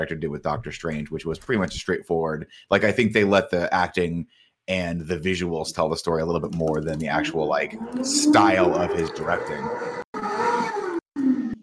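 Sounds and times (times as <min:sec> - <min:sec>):
speech: 0:00.0 - 0:10.0
street-racing cars roaring outside: 0:07.0 - 0:11.0.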